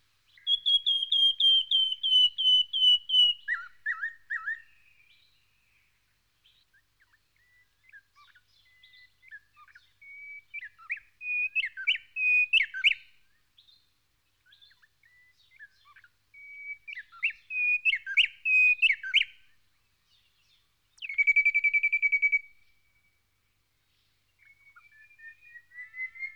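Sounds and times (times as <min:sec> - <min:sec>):
white-browed robin-chat song: 0:00.4 - 0:05.0, 0:07.4 - 0:13.1, 0:14.7 - 0:19.4, 0:21.0 - 0:23.2, 0:24.4 - 0:26.3.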